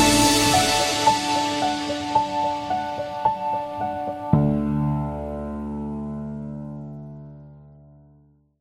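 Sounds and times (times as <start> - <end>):
cinematic love music: 0.0 - 6.6.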